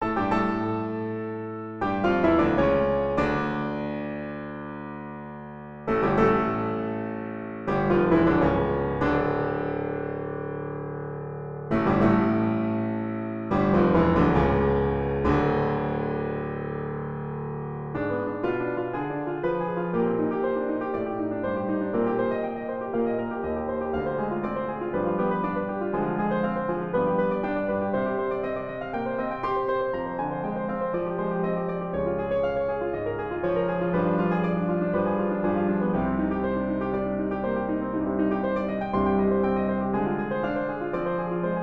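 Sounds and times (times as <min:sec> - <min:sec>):
solo piano: 0:00.0 - 0:41.6.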